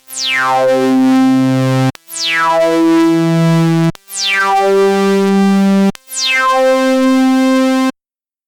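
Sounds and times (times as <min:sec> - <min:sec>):
MS20 synthesizer with mid resonance high-pass filter: 0:00.5 - 0:08.0.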